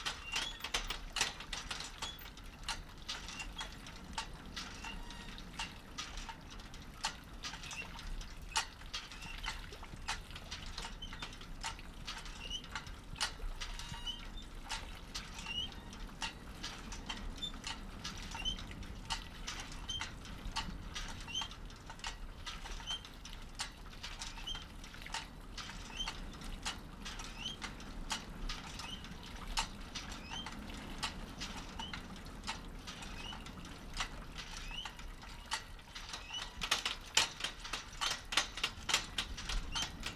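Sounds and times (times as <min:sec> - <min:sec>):
windmill pump activated by the wind: 0:00.0 - 0:40.1.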